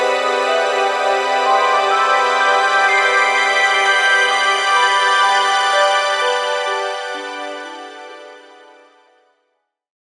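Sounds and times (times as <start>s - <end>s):
string swell: 0.0s - 6.8s
twinkling arpeggio: 0.4s - 5.9s.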